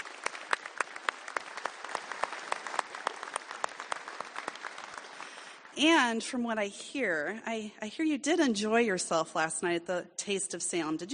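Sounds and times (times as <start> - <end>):
rally audience applause: 0.0 - 5.7
speech: 5.8 - 11.1.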